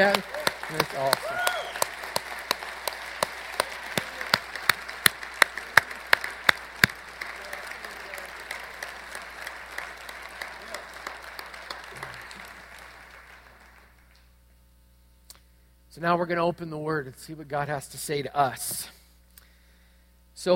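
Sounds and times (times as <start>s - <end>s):
speech: 0.0s - 1.5s, 16.0s - 19.0s
audience applause: 0.0s - 14.2s.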